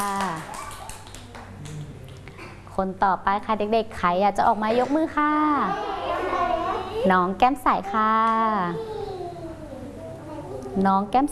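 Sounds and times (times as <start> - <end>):
children clapping hands: 0.0 - 2.2
speech: 2.8 - 5.9, 7.0 - 9.0, 10.8 - 11.3.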